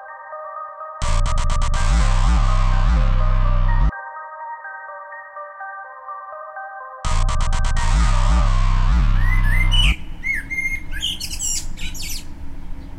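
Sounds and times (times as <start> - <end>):
pulsing electronic music with bass throb: 1.0 - 4.0, 7.0 - 10.0
Eurasian blackbird song: 9.2 - 12.9.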